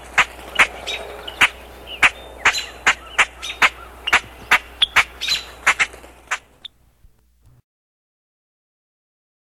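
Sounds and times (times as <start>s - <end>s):
common grackle giving chack calls: 0.0s - 6.8s.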